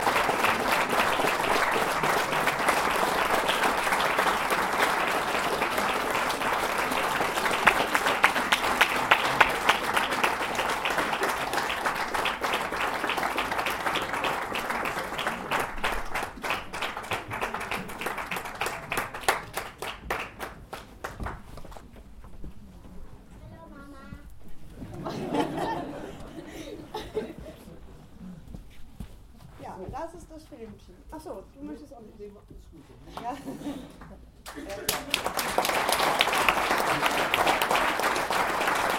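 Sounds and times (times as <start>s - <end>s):
applause: 0.0s - 21.9s, 34.0s - 38.9s
laughter: 24.8s - 28.0s.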